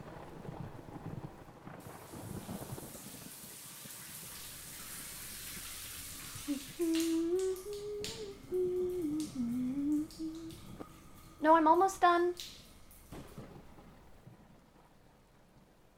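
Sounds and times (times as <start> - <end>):
shower water running: 1.8 - 13.7
speech: 11.6 - 12.5.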